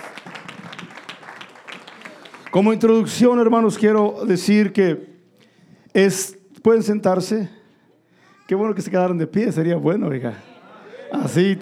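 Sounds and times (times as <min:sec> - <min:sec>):
audience applause: 0:00.0 - 0:02.9
speech: 0:02.5 - 0:05.1, 0:06.0 - 0:07.6, 0:08.5 - 0:10.5, 0:11.1 - 0:11.6
laughter: 0:10.3 - 0:11.6.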